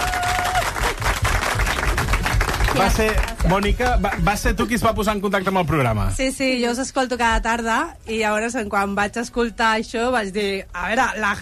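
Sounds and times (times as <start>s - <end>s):
crowd applauding: 0.0s - 4.9s
speech: 2.8s - 11.4s.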